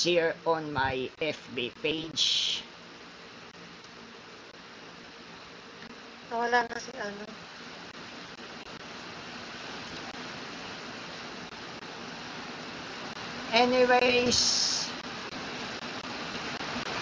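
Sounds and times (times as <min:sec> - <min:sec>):
speech: 0:00.0 - 0:02.7, 0:06.3 - 0:07.5, 0:13.5 - 0:14.9
heavy rain: 0:06.3 - 0:16.9.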